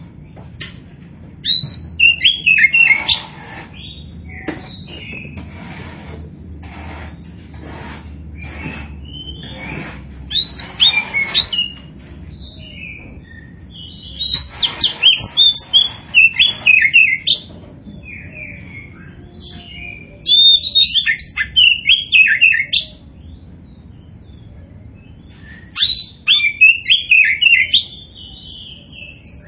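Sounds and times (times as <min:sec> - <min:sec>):
Oriental magpie-robin singing: 0:01.4 - 0:05.4, 0:08.4 - 0:29.4.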